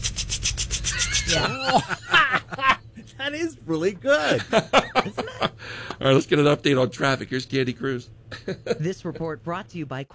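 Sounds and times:
voice imitating a water sprinkler: 0.0s - 1.7s
laughter: 0.9s - 2.8s, 4.2s - 5.6s
speech: 1.3s - 2.1s, 3.3s - 5.4s, 6.0s - 10.1s.

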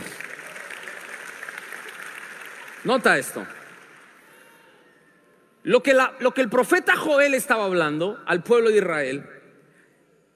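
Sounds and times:
crowd clapping: 0.0s - 4.5s
speech: 2.8s - 3.6s, 5.6s - 9.4s.

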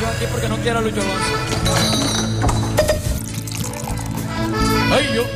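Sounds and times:
speech: 0.2s - 2.1s, 4.9s - 5.3s
drink being poured into a glass: 2.8s - 4.4s.

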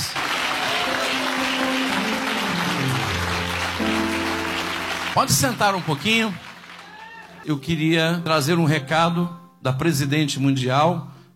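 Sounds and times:
audience clapping: 0.0s - 7.5s
organ or keyboard chord: 0.7s - 6.8s
speech: 5.2s - 6.5s, 7.4s - 11.1s.

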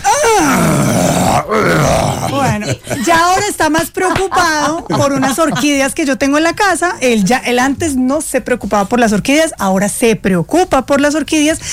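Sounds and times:
person imitating a groan of getting up: 0.0s - 3.0s
laughter: 2.0s - 6.1s
speech: 2.6s - 11.7s.

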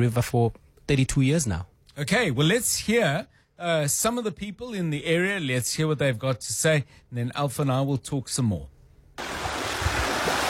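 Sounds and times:
speech: 0.0s - 9.4s
raging waters of the Tubatse River in flood surging downstream: 9.2s - 10.4s.

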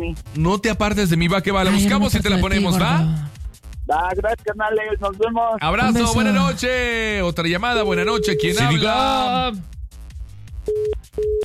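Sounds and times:
speech: 0.0s - 9.7s
caller's voice on a phone line: 1.5s - 3.2s, 3.9s - 9.6s
dead-line tone beeps after prepaid credit runs out: 7.8s - 9.2s.

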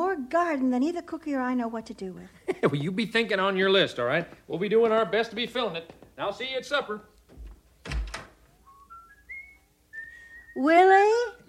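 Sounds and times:
speech: 0.3s - 7.1s, 10.6s - 11.4s
person whistling a tune: 8.6s - 10.7s.

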